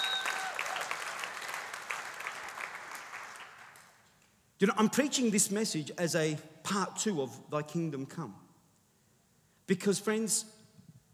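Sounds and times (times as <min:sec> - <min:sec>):
high whistle-like tones: 0:00.0 - 0:00.5
audience applauding: 0:00.0 - 0:04.0
speech: 0:04.6 - 0:08.4, 0:09.7 - 0:10.6.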